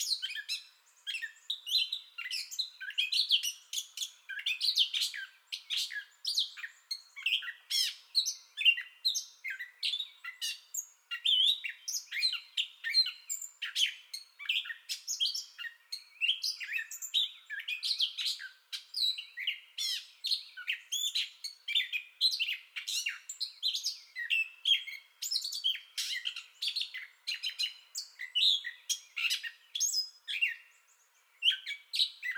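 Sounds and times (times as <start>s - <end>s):
Gray Catbird song bout: 0.0s - 32.3s.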